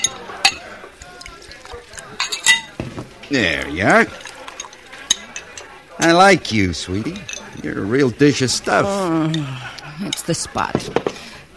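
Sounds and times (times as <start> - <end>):
ice clinking in a glass of double bourbon on the rocks: 0.0 - 7.8
speech: 3.3 - 4.3, 6.0 - 11.1.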